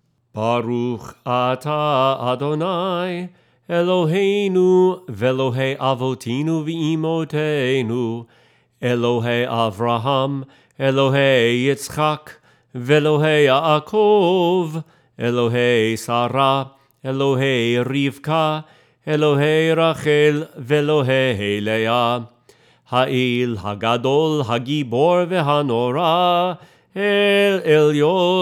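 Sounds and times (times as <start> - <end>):
singing voice: 0.0 - 28.3.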